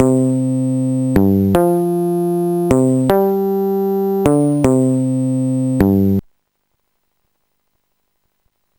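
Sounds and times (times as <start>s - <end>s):
bass: 0.0s - 6.2s.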